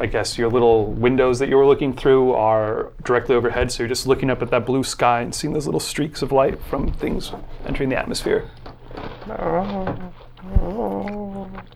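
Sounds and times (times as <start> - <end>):
speech: 0.0 - 11.2
low steady hum: 0.0 - 11.7
cat's plaintive growl: 9.2 - 11.7.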